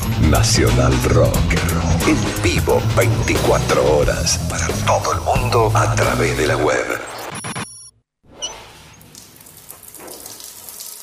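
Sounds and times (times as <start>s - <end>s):
speech: 0.3s - 7.0s
shower water running: 8.3s - 11.0s.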